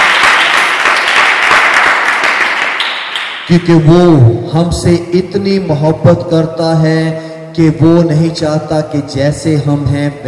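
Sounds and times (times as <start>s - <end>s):
congregation applauding at a Christian worship gathering: 0.0s - 3.6s
speech: 3.5s - 10.2s.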